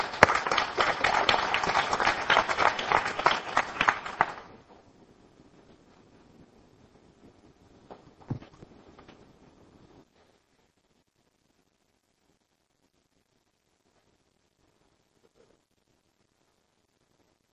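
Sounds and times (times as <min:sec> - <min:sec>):
audience applause welcoming a speaker at a Celebrate Recovery church gathering: 0:00.0 - 0:04.6.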